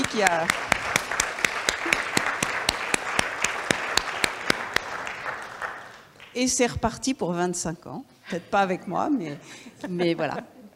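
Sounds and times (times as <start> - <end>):
audience applause: 0.0 - 6.4
speech: 0.2 - 0.7, 6.4 - 10.7.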